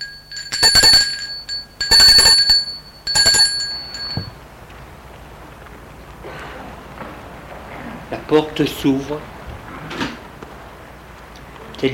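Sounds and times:
doorbell ringing: 0.0s - 4.4s
speech: 8.3s - 9.4s.

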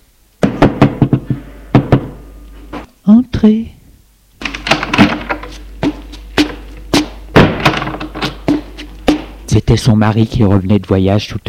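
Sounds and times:
knocking on a door: 0.4s - 2.2s, 4.4s - 9.5s
speech: 3.1s - 3.8s, 9.6s - 11.4s.

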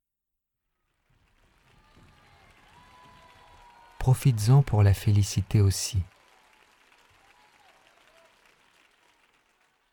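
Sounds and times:
crowd applauding: 0.9s - 9.9s
speech: 4.0s - 6.1s.

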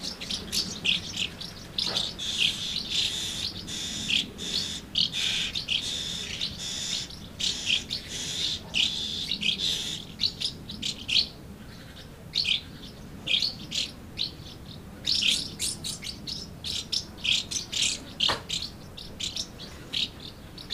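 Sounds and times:
swallows giving short chirps and twitters: 0.0s - 20.7s.

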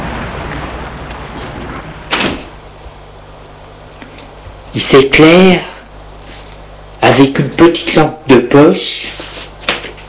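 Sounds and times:
door opening: 0.5s - 2.5s
speech: 4.8s - 5.7s, 7.2s - 9.2s.

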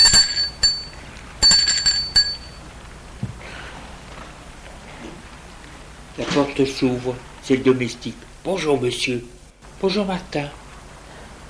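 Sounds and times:
doorbell ringing: 0.0s - 2.7s
speech: 6.4s - 10.6s.

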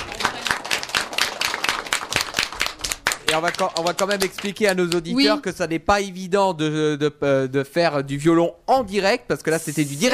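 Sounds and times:
loud applause: 0.0s - 4.7s
speech: 3.3s - 10.1s.

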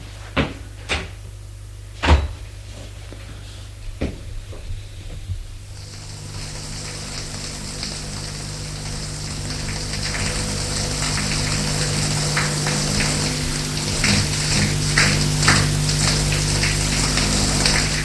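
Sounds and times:
shower running: 4.0s - 18.0s.

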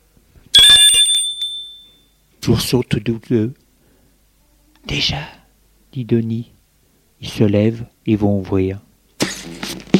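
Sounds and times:
doorbell ringing: 0.6s - 2.2s
speech: 2.5s - 3.6s, 4.9s - 6.6s, 7.2s - 9.6s.

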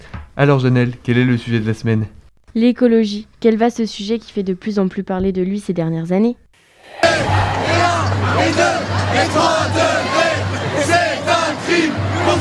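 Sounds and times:
speech: 0.4s - 10.2s
crowd of young protesters chanting in the street: 6.8s - 12.3s.

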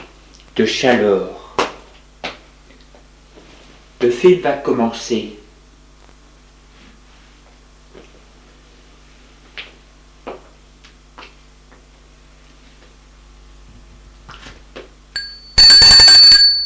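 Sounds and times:
speech: 0.6s - 1.4s, 4.0s - 5.4s
doorbell ringing at the front door: 15.2s - 16.6s.

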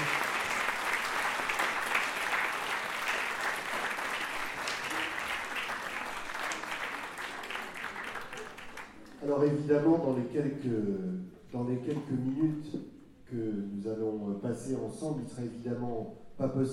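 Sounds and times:
audience applause: 0.0s - 9.2s
speech: 9.4s - 16.7s.

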